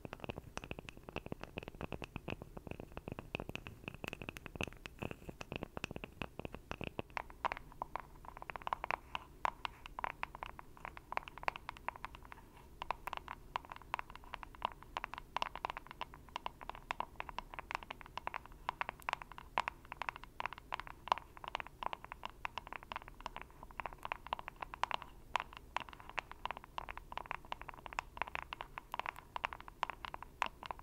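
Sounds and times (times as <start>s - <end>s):
rapid dense tapping: 0.0s - 30.8s.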